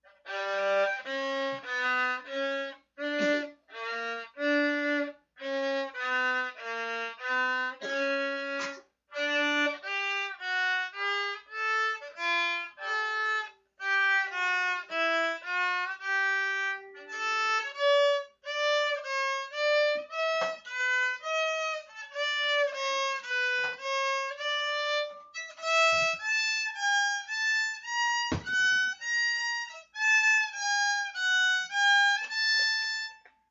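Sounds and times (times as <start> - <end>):
violin: 0.0 - 33.4.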